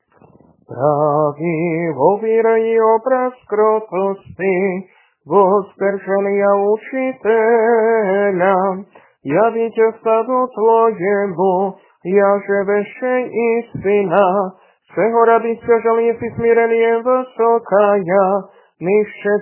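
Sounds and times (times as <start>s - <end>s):
troparion chant: 0.2s - 19.3s.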